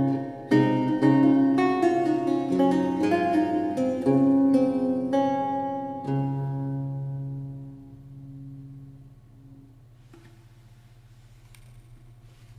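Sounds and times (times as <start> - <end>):
siciliano piece: 0.0 - 8.8.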